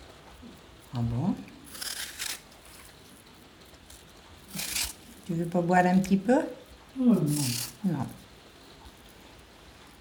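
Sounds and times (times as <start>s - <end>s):
speech: 0.9s - 1.5s, 5.3s - 8.2s
knife cutting through apples: 1.7s - 3.0s, 3.9s - 6.2s, 7.2s - 8.2s.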